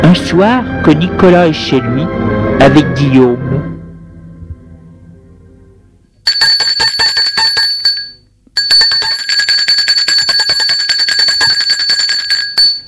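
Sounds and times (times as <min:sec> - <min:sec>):
speech: 0:00.1 - 0:03.7
doorbell ringing: 0:06.3 - 0:12.8.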